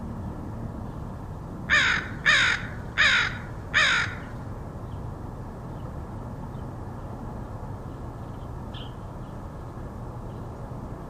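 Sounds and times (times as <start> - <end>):
crow cawing: 1.7 - 4.4.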